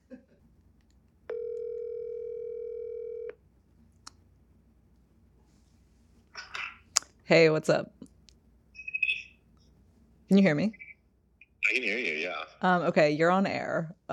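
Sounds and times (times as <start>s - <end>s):
telephone dial tone as a call is placed: 1.3s - 3.4s
speech: 7.3s - 8.0s, 10.3s - 10.8s, 11.8s - 14.1s.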